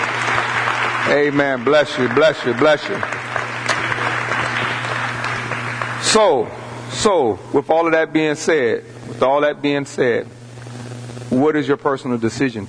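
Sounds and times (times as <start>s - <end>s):
audience clapping hands in applause: 0.0s - 6.6s
speech: 1.1s - 3.2s, 6.1s - 10.4s, 11.3s - 12.6s.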